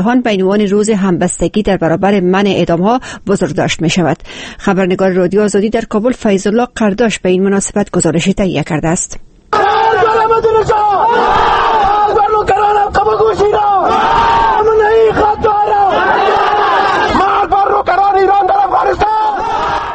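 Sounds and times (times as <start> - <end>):
speech: 0.0 - 14.7
protesters chanting in Kabul: 9.5 - 19.9.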